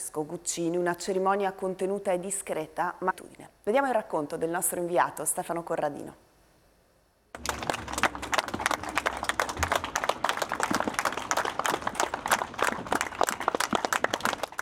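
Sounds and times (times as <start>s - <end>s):
speech: 0.2s - 6.3s
villagers' long applause at funeral: 7.4s - 14.6s.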